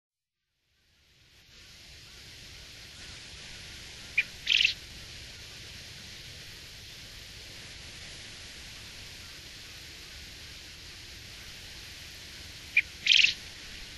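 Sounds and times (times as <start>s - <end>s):
Japanese quail call: 4.1s - 4.8s, 12.7s - 13.4s.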